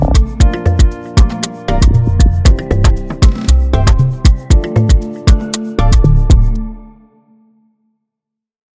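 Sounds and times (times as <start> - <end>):
music beat in F major: 0.0 - 6.7.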